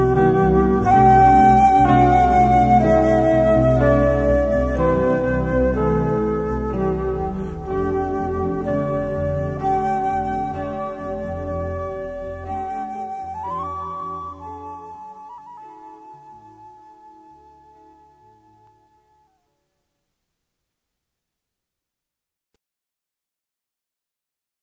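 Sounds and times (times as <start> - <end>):
flute playing: 0.0 - 19.4.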